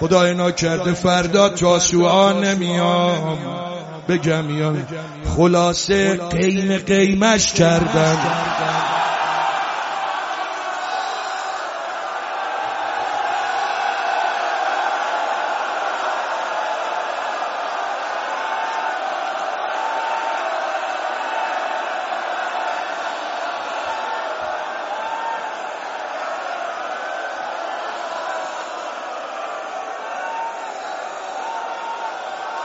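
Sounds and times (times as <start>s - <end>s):
speech: 0.0s - 8.7s
large crowd shouting together: 7.6s - 32.6s.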